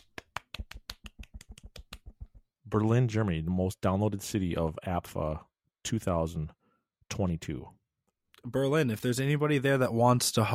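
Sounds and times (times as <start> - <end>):
golf clap: 0.0 - 2.3
speech: 2.7 - 7.8, 8.4 - 10.5.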